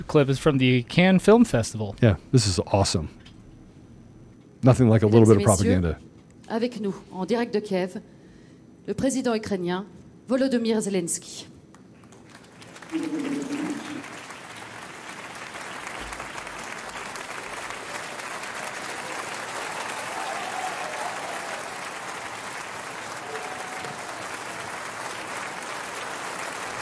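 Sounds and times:
speech: 0:00.0 - 0:03.2, 0:04.6 - 0:08.1, 0:08.8 - 0:11.5, 0:12.9 - 0:13.5
large audience applause at film festival: 0:12.0 - 0:26.8.

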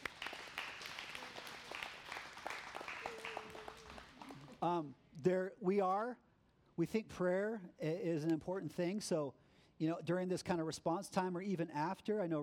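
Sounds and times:
audience clapping: 0:00.0 - 0:04.7
speech: 0:04.6 - 0:12.4.

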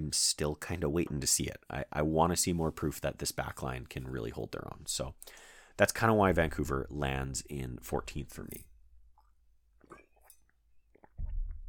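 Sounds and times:
speech: 0:00.1 - 0:08.7
person taking a quick swig of water: 0:09.1 - 0:11.6.

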